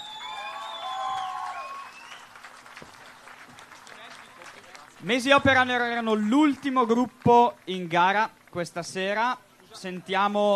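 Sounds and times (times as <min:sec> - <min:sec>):
high whistling tones: 0:00.0 - 0:02.3
audience applause: 0:00.0 - 0:08.1
speech: 0:05.0 - 0:10.5.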